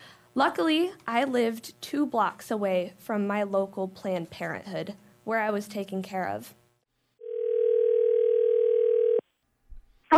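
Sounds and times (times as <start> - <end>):
speech: 0.4 - 6.6
telephone dial tone: 7.2 - 9.2.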